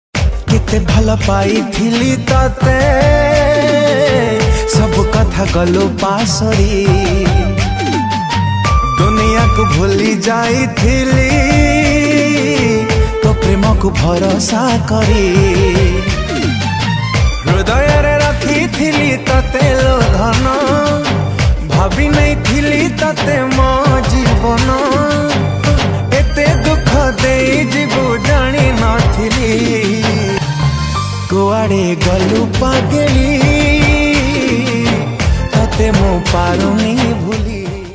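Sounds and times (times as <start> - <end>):
sad Odia song: 0.4 - 37.9.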